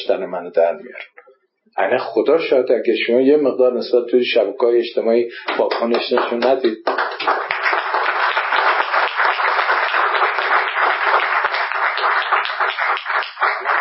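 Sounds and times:
speech: 0.0s - 1.2s, 1.8s - 7.4s
audience applause at a talk by a social entrepreneur: 5.4s - 13.7s.

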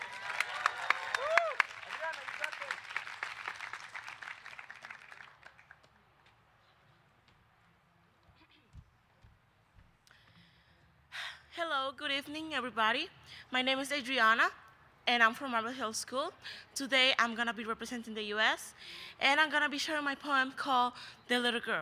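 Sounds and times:
brief cheer: 0.0s - 2.7s
audience applause: 0.0s - 5.9s
speech: 12.2s - 21.7s.

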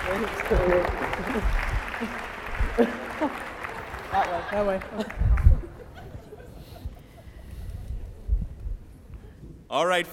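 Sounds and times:
audience applause: 0.0s - 6.3s
speech: 0.1s - 3.5s, 4.1s - 5.4s, 9.7s - 10.1s
laughter: 0.8s - 8.4s.

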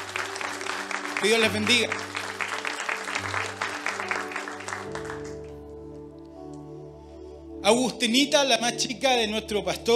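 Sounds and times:
audience applause: 0.0s - 5.7s
speech: 1.2s - 2.1s, 3.2s - 3.6s, 7.7s - 9.9s.

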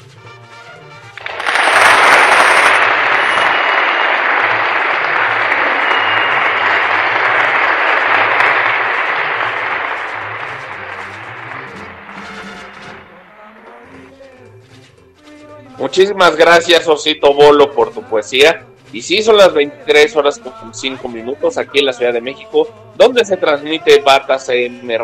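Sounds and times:
audience applause: 1.2s - 13.3s
speech: 15.9s - 25.0s.

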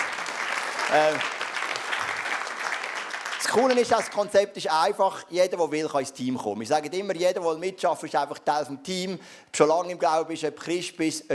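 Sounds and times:
audience applause: 0.0s - 4.4s
speech: 0.9s - 1.4s, 3.5s - 11.3s.

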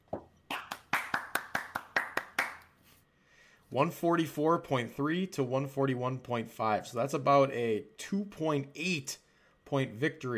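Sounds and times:
round of applause: 0.5s - 2.6s
speech: 3.7s - 10.3s.

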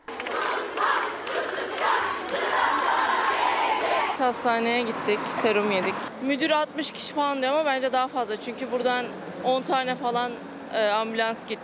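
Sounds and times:
large crowd of students shouting and chanting in protest: 0.0s - 4.4s
speech: 4.2s - 11.6s.

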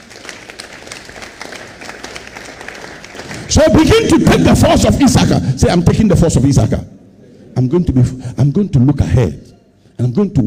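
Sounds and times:
audience clapping: 0.0s - 5.0s
speech: 3.5s - 7.0s, 7.6s - 10.4s.

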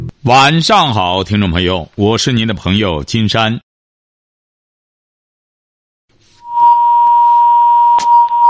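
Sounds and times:
speech: 0.2s - 3.6s
feedback squeal: 6.4s - 8.4s
phone line echo: 6.5s - 8.4s.

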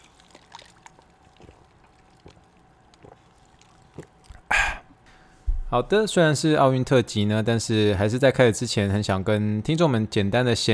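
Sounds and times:
sparkling water being poured: 0.0s - 4.3s
speech: 5.7s - 10.7s.

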